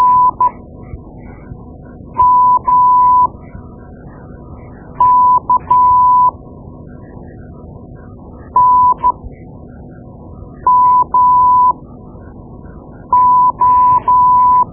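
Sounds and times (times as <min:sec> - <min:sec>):
morse code: 0:00.0 - 0:00.5, 0:02.2 - 0:03.3, 0:05.0 - 0:06.3, 0:08.6 - 0:09.1, 0:10.7 - 0:11.8, 0:13.1 - 0:14.7.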